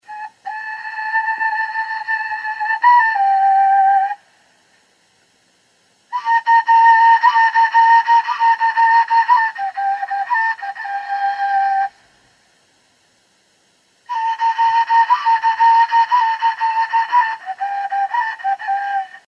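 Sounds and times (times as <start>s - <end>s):
small flute playing: 0.0s - 4.3s, 6.1s - 12.0s, 14.0s - 19.2s.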